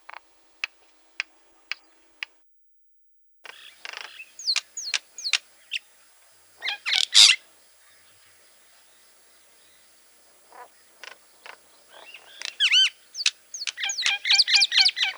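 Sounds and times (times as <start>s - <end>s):
common myna calling: 3.5s - 15.1s.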